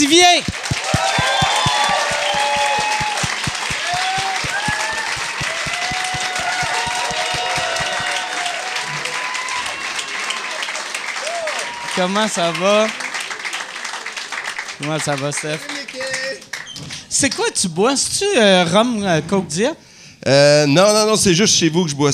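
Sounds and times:
speech: 0.0 - 1.4, 12.0 - 13.0, 14.8 - 15.8, 17.1 - 22.1
audience applause: 0.0 - 16.6.

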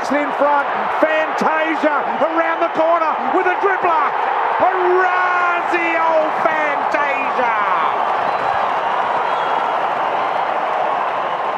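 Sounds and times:
stadium crowd cheering: 0.0 - 11.5
speech: 0.1 - 6.6.

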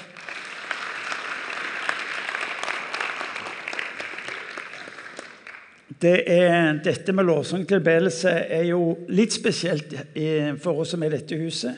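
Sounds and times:
audience applause: 0.0 - 5.8
speech: 6.0 - 11.7.

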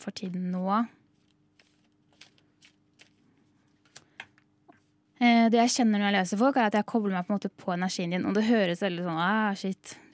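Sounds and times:
speech: 0.0 - 1.0, 5.2 - 10.1
cards drawn from a deck for a three-card reading: 1.6 - 3.2.

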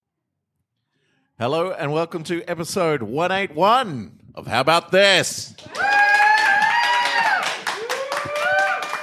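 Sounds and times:
speech: 1.4 - 5.9
live podcast audience whooping: 5.6 - 9.0.

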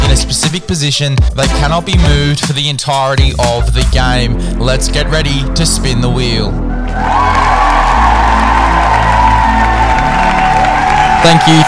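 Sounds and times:
speech: 0.2 - 7.6, 11.2 - 11.6
applause and cheering sound effect: 6.7 - 11.6.

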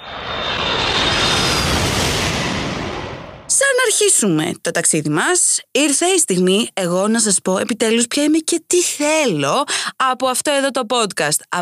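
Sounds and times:
airplane engine roar during takeoff: 0.0 - 3.5
high whine: 0.0 - 3.5
speech: 4.0 - 11.6.

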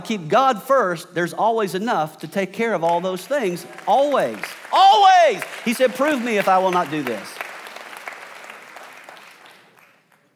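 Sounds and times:
speech: 0.1 - 7.4
audience clapping: 2.8 - 10.3.

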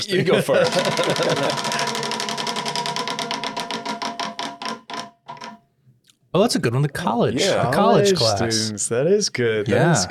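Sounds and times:
laughter: 0.0 - 2.0, 7.4 - 8.4
speech: 0.0 - 2.1, 6.3 - 10.0
prize wheel spun in a Bible class clicking: 0.6 - 5.6.

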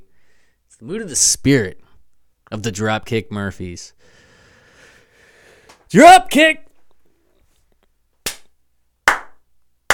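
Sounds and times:
speech: 0.8 - 1.8, 2.5 - 4.2, 5.9 - 6.6
hand claps and slaps: 8.2 - 9.9.

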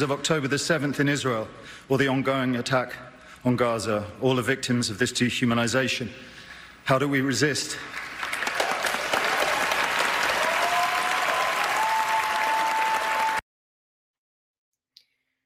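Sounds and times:
speech: 0.0 - 8.0
audience applause: 7.9 - 13.4.

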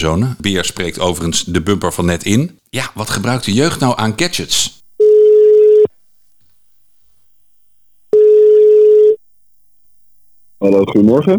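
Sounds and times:
speech: 0.0 - 4.8, 10.6 - 11.3
phone ringback tone: 5.0 - 5.9, 8.1 - 9.2.

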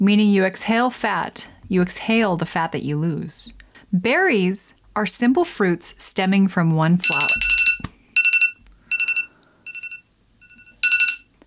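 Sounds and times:
speech: 0.0 - 7.6
loud phone ringer: 7.0 - 11.3.

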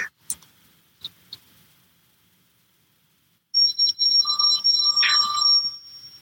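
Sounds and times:
phone ringing: 3.6 - 6.2.

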